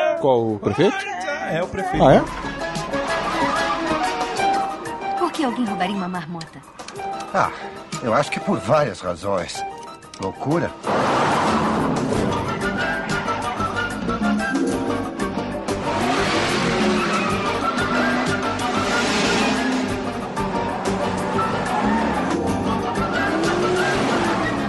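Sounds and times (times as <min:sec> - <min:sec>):
speech: 0:00.2 - 0:02.6, 0:05.4 - 0:12.3
truck engine roaring while driven wildly: 0:02.0 - 0:10.1, 0:10.7 - 0:24.6
truck tires skidding and squealing: 0:02.2 - 0:05.9, 0:10.8 - 0:24.6.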